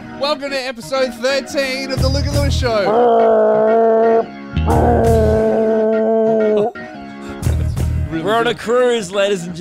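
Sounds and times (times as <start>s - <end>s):
speech: 0.2s - 5.2s, 8.3s - 9.5s
voice imitating a boat horn: 2.9s - 6.7s.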